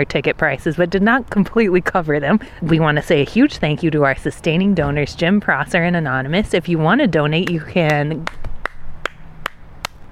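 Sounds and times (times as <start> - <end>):
speech: 0.0 - 8.4
person clapping: 7.4 - 10.0.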